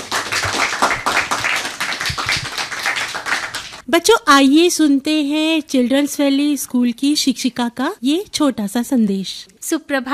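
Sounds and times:
applause: 0.0s - 3.8s
speech: 3.9s - 10.1s.

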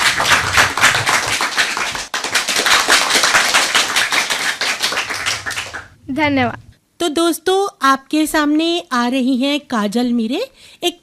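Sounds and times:
children clapping: 0.0s - 6.0s
speech: 6.2s - 11.0s.

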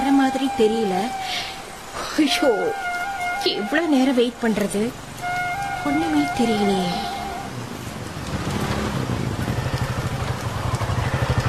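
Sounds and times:
rain at night: 0.0s - 11.4s
speech: 0.6s - 1.5s, 2.2s - 5.1s, 5.8s - 7.1s.

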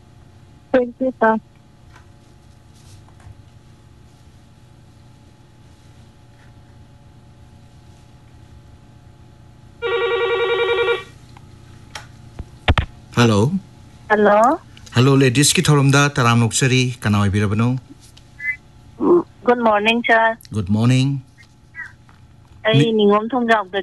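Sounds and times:
low hum: 0.0s - 23.8s
speech: 0.8s - 1.5s, 14.1s - 18.0s, 19.5s - 21.3s, 22.6s - 23.8s
telephone ringing for a phone-in call to a radio show: 9.8s - 11.2s.

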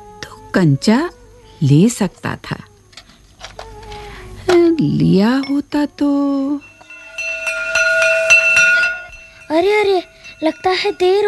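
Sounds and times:
speech: 0.5s - 2.7s, 4.8s - 6.7s, 9.5s - 11.2s
school bell ringing: 6.5s - 11.2s.

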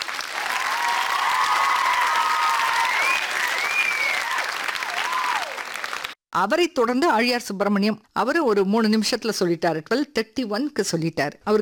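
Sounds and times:
applause: 0.0s - 6.2s
speech: 6.4s - 11.6s.

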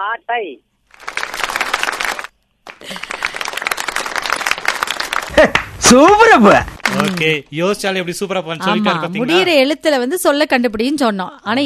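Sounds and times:
speech: 0.0s - 0.7s, 5.3s - 11.6s
audience applauding a performer: 0.9s - 7.4s.

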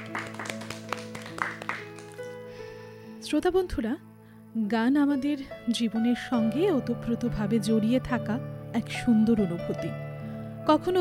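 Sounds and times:
audience clapping for a young boy: 0.0s - 2.4s
speech: 3.3s - 10.0s, 10.6s - 11.0s.

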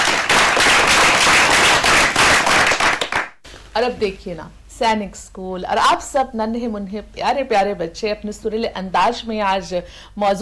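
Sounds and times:
audience applause: 0.0s - 3.4s
speech: 3.8s - 10.4s.

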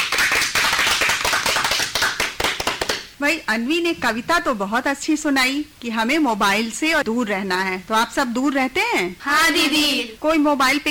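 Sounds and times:
audience applause after a poem: 0.0s - 2.9s
speech: 3.2s - 10.8s.

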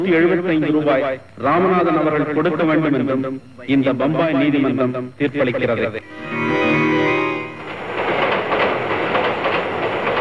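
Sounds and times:
speech: 0.0s - 6.9s
train rattling rhythmically along the tracks: 5.4s - 10.1s.

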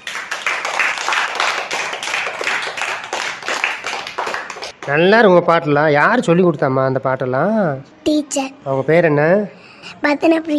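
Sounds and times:
audience clapping for a song: 0.0s - 5.1s
speech: 4.8s - 10.5s.

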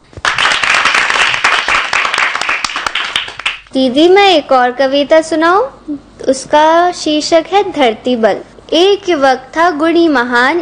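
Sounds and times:
people clapping for a child: 0.1s - 3.7s
speech: 3.7s - 10.5s.

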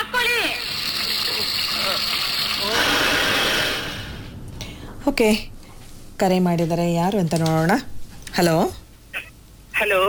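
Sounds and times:
water boiling in a pot for cooking: 0.1s - 4.2s
speech: 5.2s - 5.5s, 6.2s - 8.8s, 9.8s - 10.0s.

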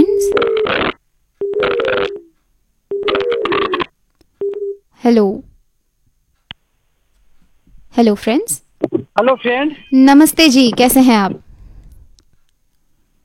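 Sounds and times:
telephone line tones as a radio caller is connected: 1.4s - 2.3s, 2.9s - 4.8s
speech: 5.1s - 5.5s, 8.0s - 11.4s.

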